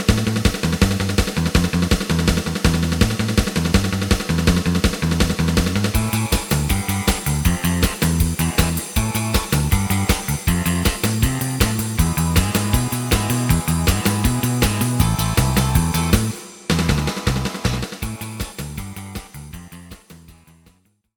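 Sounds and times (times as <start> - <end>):
lead melody: 0.1 - 20.3.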